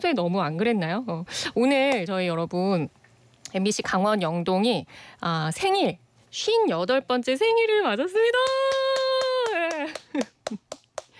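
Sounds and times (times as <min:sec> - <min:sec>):
speech: 0:00.0 - 0:08.8, 0:10.2 - 0:10.7
rhythmic hand clapping for a station's 58th birthday: 0:08.4 - 0:11.1.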